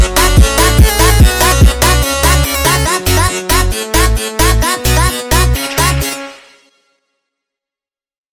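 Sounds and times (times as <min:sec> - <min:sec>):
sped up funk zuado music: 0:00.0 - 0:06.6.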